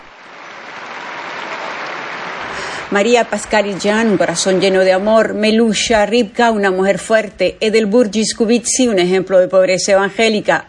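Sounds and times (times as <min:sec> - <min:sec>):
audience applause: 0:00.0 - 0:05.0
speech: 0:02.9 - 0:10.6.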